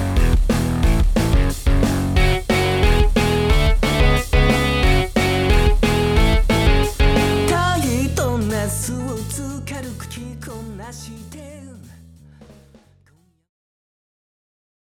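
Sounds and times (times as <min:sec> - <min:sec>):
boogie-woogie music: 0:00.0 - 0:11.7.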